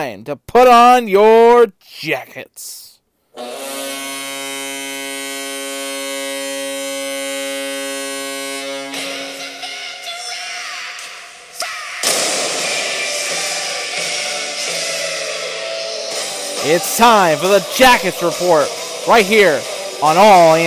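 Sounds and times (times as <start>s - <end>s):
speech: 0.0s - 3.8s, 16.6s - 20.6s
long steady horn-like drone: 3.4s - 10.1s, 16.2s - 20.6s
hockey arena cannon firing: 12.0s - 13.4s.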